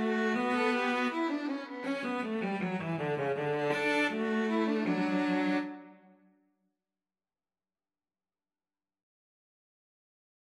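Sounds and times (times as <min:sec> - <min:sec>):
string trio playing a gavotte: 0:00.0 - 0:06.0.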